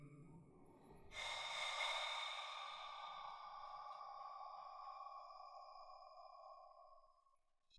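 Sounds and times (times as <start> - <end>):
hum: 1.1 - 7.3.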